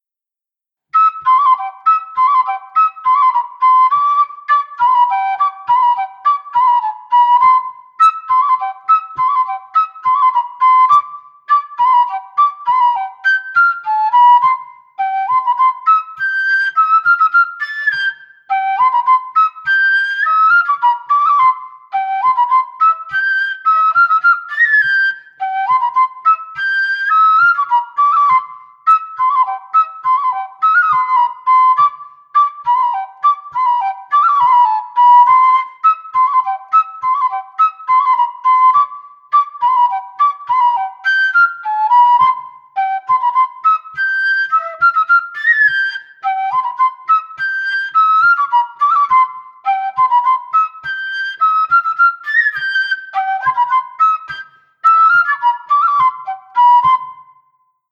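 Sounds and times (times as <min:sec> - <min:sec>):
Limousin folk bourrée tune: 0:01.0 - 0:57.3.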